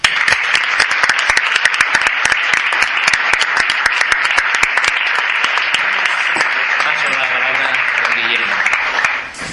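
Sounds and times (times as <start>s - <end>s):
audience applause: 0.0s - 9.4s.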